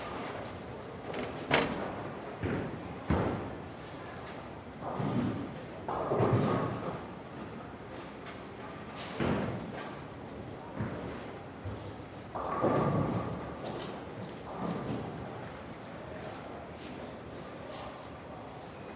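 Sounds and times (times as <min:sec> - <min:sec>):
bowling alley light activity: 0:00.0 - 0:18.9.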